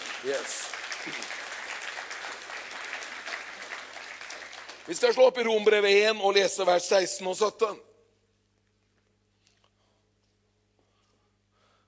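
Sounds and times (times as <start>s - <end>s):
audience applause: 0.0s - 6.0s
speech: 0.2s - 1.4s, 4.9s - 7.9s.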